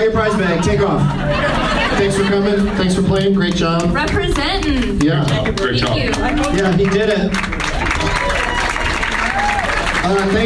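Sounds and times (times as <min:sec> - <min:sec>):
laughter: 0:00.0 - 0:03.8
speech: 0:00.0 - 0:07.6, 0:10.0 - 0:10.4
audience applause: 0:03.4 - 0:10.4.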